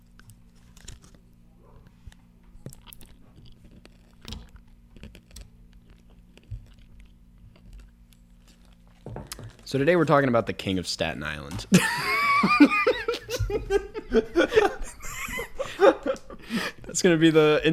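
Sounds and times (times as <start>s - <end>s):
crunchy chewing of a Nerds Rope candy: 0.0s - 9.7s
speech: 9.7s - 12.7s, 17.0s - 17.7s
laughter: 11.7s - 17.0s.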